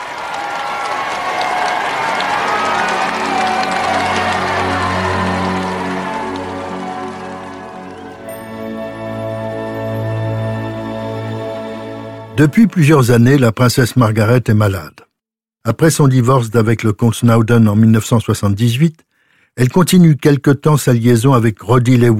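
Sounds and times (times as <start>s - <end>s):
crowd cheering along the Mall: 0.0s - 13.2s
speech: 12.4s - 22.1s.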